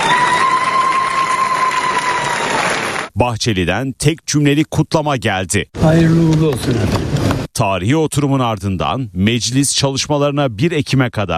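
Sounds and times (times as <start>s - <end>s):
applause in a parliament chamber: 0.0s - 3.1s
speech: 3.2s - 11.3s.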